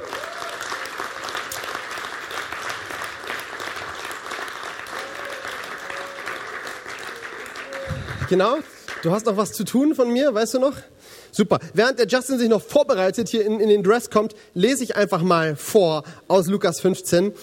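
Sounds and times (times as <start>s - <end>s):
audience applause: 0.0s - 9.1s
speech: 8.3s - 17.4s.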